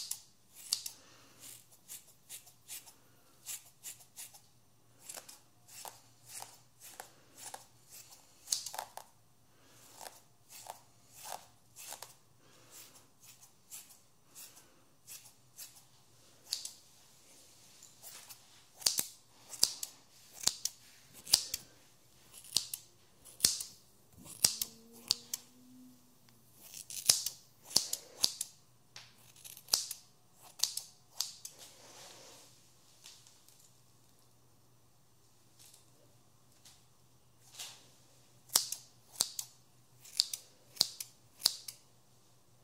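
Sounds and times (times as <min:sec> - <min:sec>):
scissors snipping real hair: 0:00.0 - 0:04.4, 0:05.0 - 0:09.1, 0:09.9 - 0:14.5, 0:16.4 - 0:16.8, 0:18.1 - 0:21.6, 0:22.3 - 0:25.5, 0:26.6 - 0:28.6, 0:29.2 - 0:31.5, 0:38.5 - 0:41.8
low steady hum: 0:00.0 - 0:42.6.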